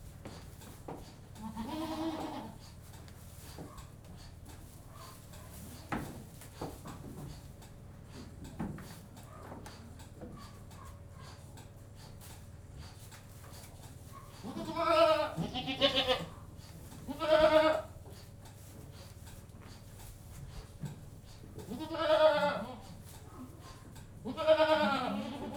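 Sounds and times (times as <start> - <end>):
goat bleating inside a goat house: 1.4 - 2.7, 14.4 - 16.4, 17.0 - 18.0, 21.6 - 23.0, 24.2 - 25.5.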